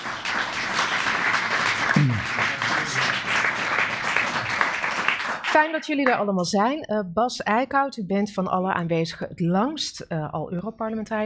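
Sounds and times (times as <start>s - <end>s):
applause: 0.0s - 6.2s
speech: 2.0s - 2.5s, 5.6s - 11.2s.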